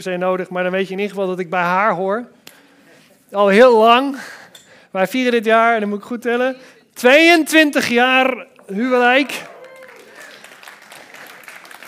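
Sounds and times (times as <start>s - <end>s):
speech: 0.0s - 2.4s, 3.3s - 9.5s
audience applause: 8.8s - 11.8s.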